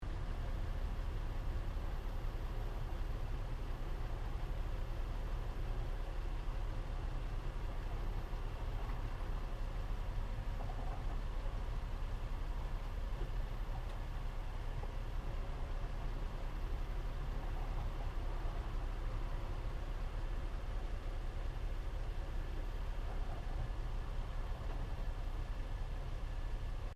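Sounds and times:
Nissan 350Z manual sports car exhaust idling: 0:00.0 - 0:26.9.

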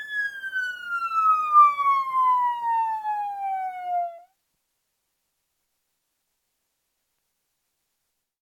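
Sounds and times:
police car siren wailing heard from interior: 0:00.0 - 0:04.3.

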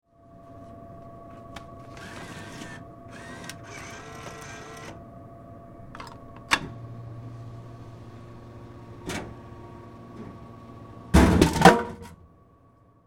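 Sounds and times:
vending machine dispensing soda: 0:01.9 - 0:05.0, 0:06.0 - 0:12.2.

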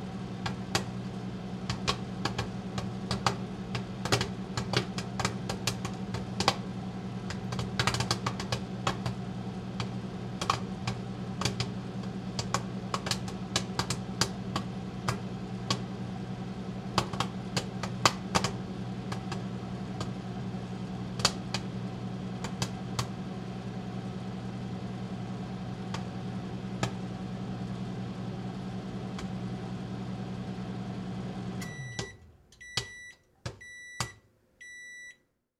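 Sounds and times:
household microwave cooking popcorn: 0:00.0 - 0:35.2
popcorn popping in a microwave: 0:00.2 - 0:23.3, 0:25.7 - 0:27.8.

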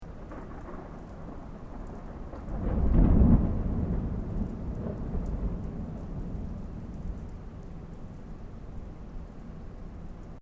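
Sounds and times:
distant thunder: 0:00.1 - 0:08.0.

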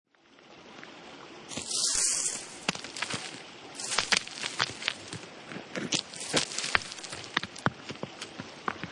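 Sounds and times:
leaves falling into a river: 0:01.5 - 0:05.3, 0:06.0 - 0:07.6
rocks falling into a river: 0:01.5 - 0:08.8.

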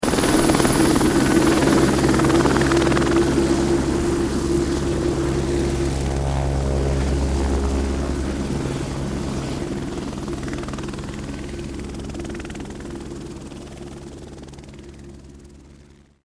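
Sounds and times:
helicopter flying away close by: 0:00.0 - 0:16.2.

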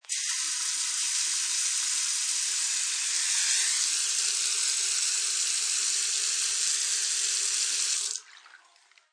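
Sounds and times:
bathroom faucet running: 0:00.0 - 0:08.3.

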